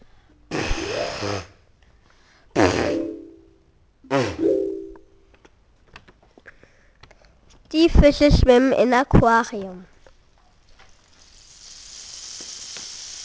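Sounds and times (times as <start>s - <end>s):
elephant trumpeting: 0.5s - 1.6s, 2.6s - 3.3s
speech: 1.2s - 1.5s, 7.7s - 9.9s.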